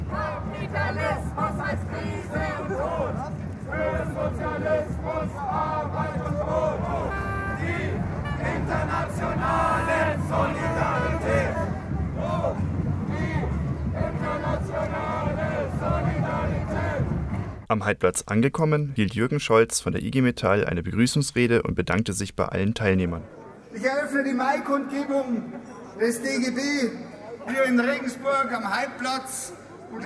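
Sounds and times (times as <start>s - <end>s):
marchers chanting left-wing slogans: 0.0s - 17.6s
speech: 17.7s - 30.0s.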